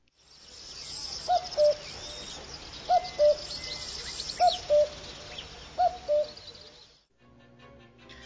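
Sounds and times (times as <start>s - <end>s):
wild common cuckoo calling: 0.7s - 7.0s.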